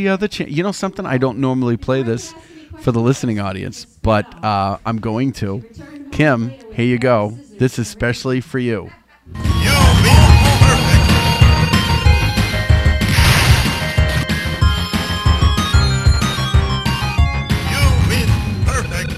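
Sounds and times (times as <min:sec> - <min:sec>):
speech: 0:00.0 - 0:09.8
arcade game music: 0:09.3 - 0:19.1
Street Fighter crash and thwack hit effects: 0:13.1 - 0:14.1.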